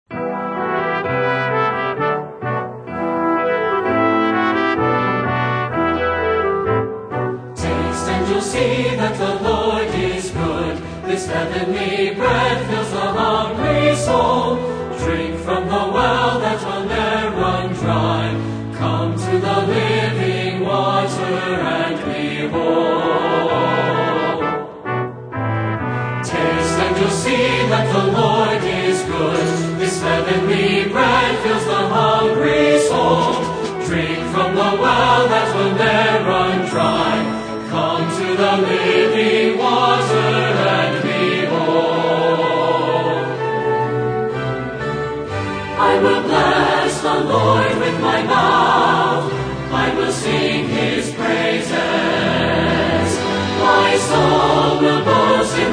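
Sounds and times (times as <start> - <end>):
orchestra playing: 0.1 - 55.7
singers: 7.6 - 24.9, 26.3 - 43.9, 45.5 - 55.7.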